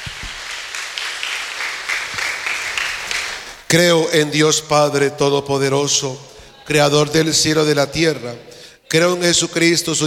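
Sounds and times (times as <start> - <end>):
audience applause: 0.0 - 3.7
speech: 3.7 - 10.0.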